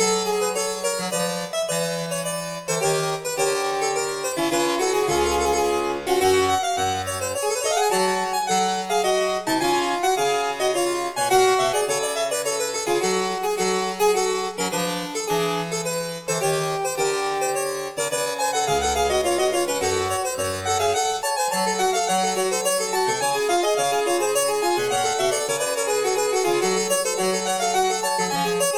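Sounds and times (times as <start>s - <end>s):
harpsichord piece in G: 0.0s - 28.7s.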